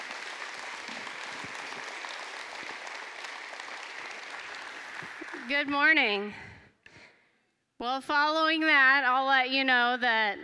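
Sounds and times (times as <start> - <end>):
church congregation applauding: 0.0 - 6.0
speech: 5.4 - 6.5, 7.8 - 10.4.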